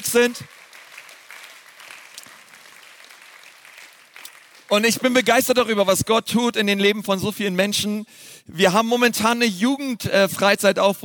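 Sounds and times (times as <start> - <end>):
speech: 0.0 - 0.6, 4.7 - 11.0
audience applause: 0.0 - 5.0.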